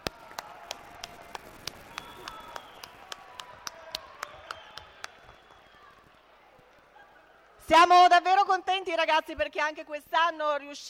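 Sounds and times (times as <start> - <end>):
audience clapping for performers on stage: 0.0 - 7.6
speech: 7.7 - 10.8.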